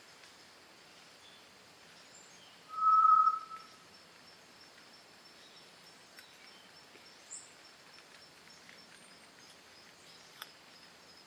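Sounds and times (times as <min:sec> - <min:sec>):
solitary tinamou whistled note: 0:02.7 - 0:03.8.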